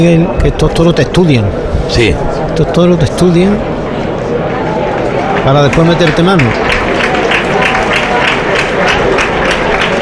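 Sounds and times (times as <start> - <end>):
speech: 0.0 - 3.7, 5.4 - 6.7
bullring audience applause: 4.8 - 10.0.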